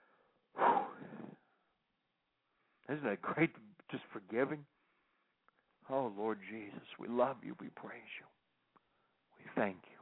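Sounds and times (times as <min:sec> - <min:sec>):
deep breath: 0:00.0 - 0:01.8, 0:04.7 - 0:05.4
speech: 0:02.9 - 0:04.8, 0:05.9 - 0:08.4, 0:09.4 - 0:10.0.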